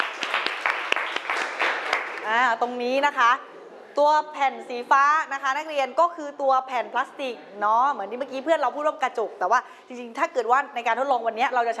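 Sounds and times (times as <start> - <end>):
classroom applause: 0.0 - 2.4
speech: 2.3 - 11.7.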